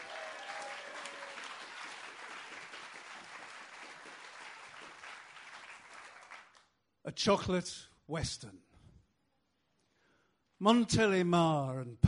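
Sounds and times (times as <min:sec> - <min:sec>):
audience applause welcoming a performer on stage: 0:00.0 - 0:06.6
speech: 0:07.1 - 0:08.6, 0:10.6 - 0:12.0.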